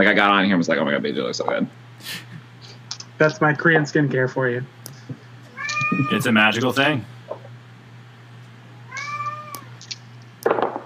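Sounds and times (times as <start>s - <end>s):
speech: 0.0s - 2.3s, 3.2s - 4.8s, 5.9s - 7.2s
cat screaming with a drawn-out high wailing yowl: 5.5s - 6.3s, 8.9s - 9.8s.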